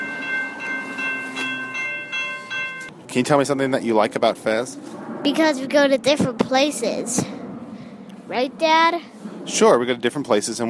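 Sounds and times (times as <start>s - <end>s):
bells ringing: 0.0s - 2.9s
speech: 3.1s - 7.4s, 8.3s - 10.6s.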